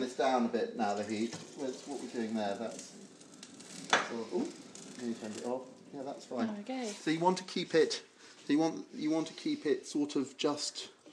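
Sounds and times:
speech: 0:00.0 - 0:03.0, 0:04.0 - 0:11.0
food quietly bubbling and simmering in a pan: 0:00.0 - 0:11.1.

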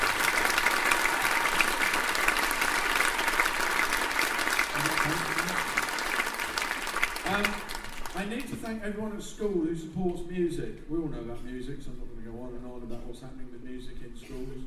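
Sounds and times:
crowd applauding: 0:00.0 - 0:08.8
speech: 0:08.2 - 0:12.1, 0:13.2 - 0:14.6.

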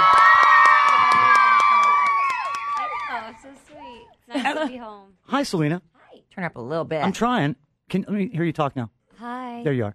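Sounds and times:
audience cheering: 0:00.0 - 0:03.6
speech: 0:04.6 - 0:09.9.

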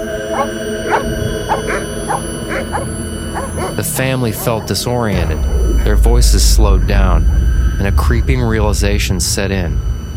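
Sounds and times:
steady hum: 0:00.0 - 0:10.1
dogs barking excitedly in a frenzy: 0:00.2 - 0:04.8
speech: 0:00.4 - 0:02.1, 0:03.8 - 0:09.9.

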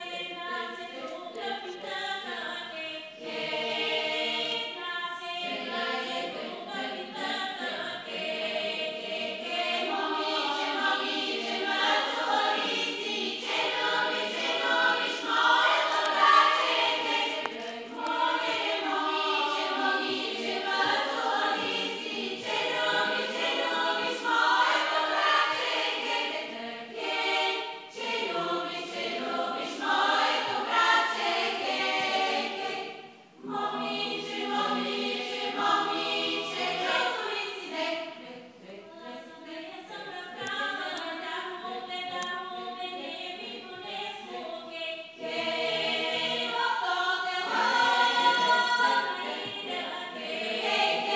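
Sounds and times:
Bulgarian voices singing: 0:00.0 - 0:51.1.

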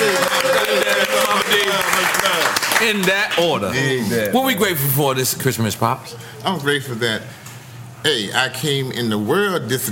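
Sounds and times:
crowd whooping and cheering: 0:00.0 - 0:01.7
crowd applauding: 0:00.0 - 0:03.6
speech: 0:02.8 - 0:07.4, 0:08.0 - 0:09.9.

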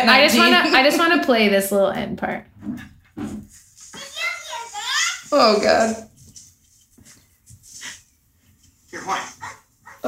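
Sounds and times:
speech: 0:00.0 - 0:03.4, 0:05.3 - 0:06.1, 0:09.0 - 0:10.0
dog barking: 0:09.0 - 0:10.0.

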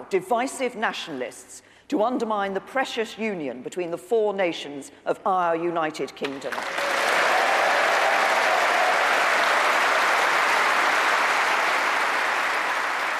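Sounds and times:
speech: 0:00.1 - 0:06.9
crowd applauding a speech: 0:06.5 - 0:13.1.

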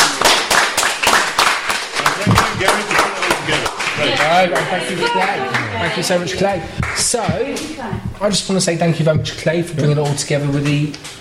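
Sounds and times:
audience applause: 0:00.0 - 0:07.6
voices calling out: 0:02.1 - 0:08.2
speech: 0:04.4 - 0:11.1.

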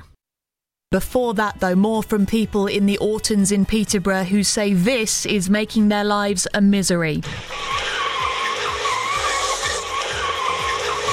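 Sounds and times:
speech: 0:00.9 - 0:07.9
car engines revving while drifting in Peterborough: 0:07.3 - 0:11.1
tyres screeching as cars drift in Peterborough: 0:07.4 - 0:11.1.

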